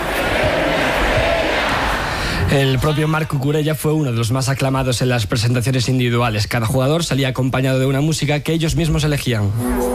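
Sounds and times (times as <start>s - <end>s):
crowd chanting for a footballer at a title celebration: 0.0s - 3.0s
speech: 2.5s - 9.9s.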